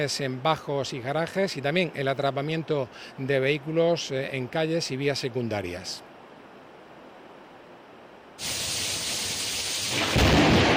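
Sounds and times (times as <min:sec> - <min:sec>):
speech: 0:00.0 - 0:06.1
heavy rain downpour in Murcia: 0:08.3 - 0:10.7.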